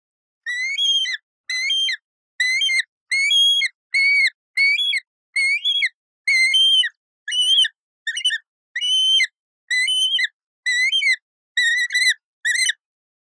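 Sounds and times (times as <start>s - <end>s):
yellow-billed kite whistled chirps: 0.5s - 12.8s.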